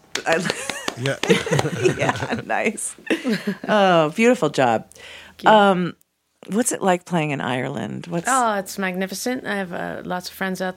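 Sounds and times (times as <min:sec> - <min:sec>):
audience clapping: 0:00.0 - 0:02.4
speech: 0:00.2 - 0:10.7
laughter: 0:00.3 - 0:03.8.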